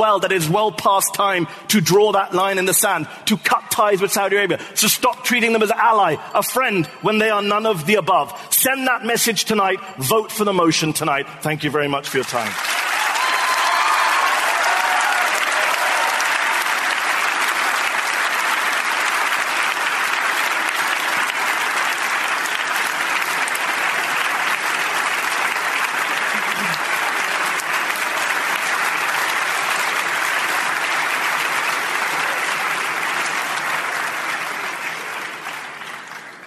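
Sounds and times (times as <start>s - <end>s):
speech: 0.0s - 12.8s
audience applause: 12.1s - 36.4s.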